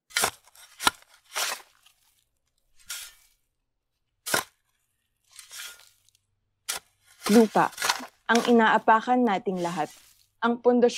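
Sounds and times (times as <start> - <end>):
tool digging and tilling soil: 0.0 - 3.4, 4.2 - 10.3
speech: 7.3 - 10.9.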